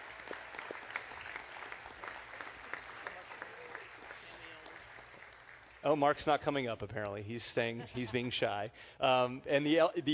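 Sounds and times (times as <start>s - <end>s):
audience applause: 0.0s - 5.9s
speech: 5.8s - 10.1s.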